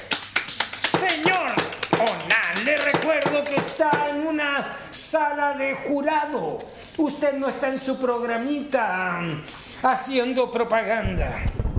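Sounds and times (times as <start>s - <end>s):
applause: 0.0s - 4.2s
speech: 3.1s - 11.6s.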